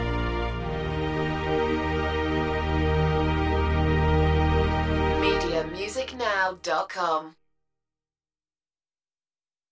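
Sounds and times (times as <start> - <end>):
string ensemble playing: 0.0 - 6.3.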